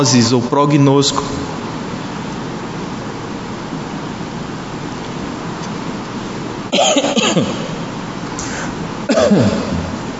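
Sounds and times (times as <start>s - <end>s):
speech: 0.0s - 1.5s, 6.8s - 7.6s, 9.2s - 9.7s
person coughing after water went down wrong: 6.7s - 7.8s, 8.4s - 10.0s.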